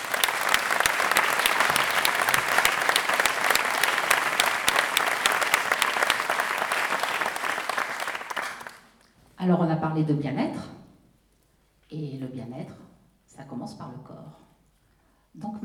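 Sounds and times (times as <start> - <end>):
audience applause: 0.0 - 8.9
speech: 9.6 - 10.8.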